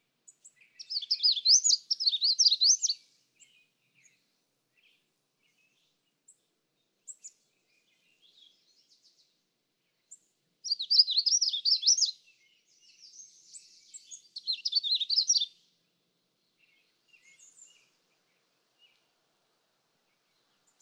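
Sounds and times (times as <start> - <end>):
magnolia warbler song: 0.0 - 20.7.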